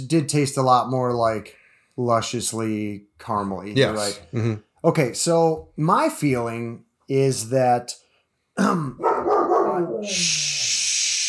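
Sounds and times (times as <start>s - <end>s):
speech: 0.0s - 8.0s, 8.6s - 9.2s, 9.8s - 10.7s
dog barking in a house: 9.0s - 10.0s
steady hissing noise: 10.1s - 11.2s.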